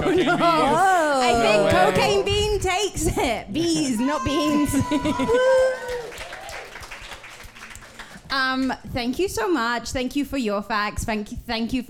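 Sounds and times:
laughter: 0.0 - 1.5, 4.3 - 5.8
speech: 0.2 - 6.0, 8.3 - 11.8
audience cheering: 3.8 - 8.1
audience whooping: 4.0 - 7.2
audience clapping: 4.8 - 8.8.

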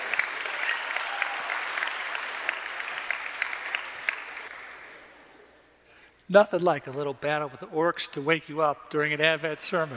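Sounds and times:
audience clapping: 0.0 - 5.4
speech: 6.3 - 9.9.

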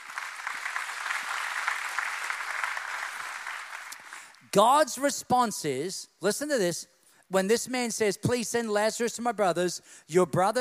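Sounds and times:
audience applauding: 0.0 - 4.4
speech: 4.5 - 10.5.

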